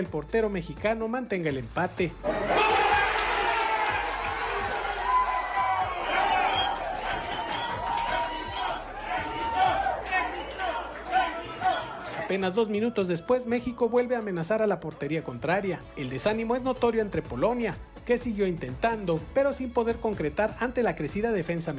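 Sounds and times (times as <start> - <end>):
speech: 0.0 - 2.6, 12.3 - 21.7
individual yells: 2.2 - 12.3
stadium crowd roaring and cheering: 2.2 - 12.5.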